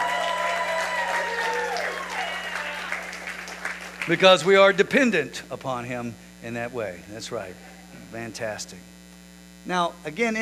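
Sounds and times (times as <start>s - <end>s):
audience clapping: 0.0s - 4.9s
speech: 4.1s - 8.9s, 9.6s - 10.4s.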